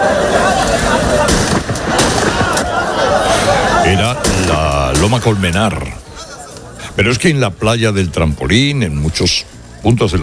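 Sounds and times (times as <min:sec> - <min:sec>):
laughter: 0:00.0 - 0:07.0
street noise with voices: 0:00.0 - 0:10.2
gunshots fired into the air by the Spanish Policía Nacional: 0:00.6 - 0:03.2, 0:04.0 - 0:05.4
speech: 0:05.0 - 0:06.0, 0:07.0 - 0:10.2.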